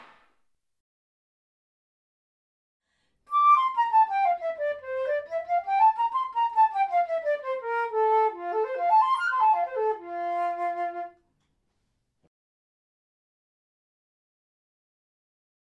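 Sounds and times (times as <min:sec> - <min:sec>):
wind instruments: 0:03.3 - 0:11.2.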